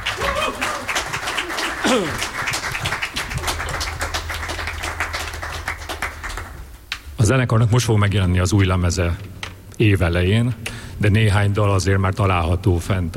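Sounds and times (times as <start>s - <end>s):
audience applause: 0.0s - 6.8s
speech: 1.9s - 2.3s, 7.2s - 13.1s.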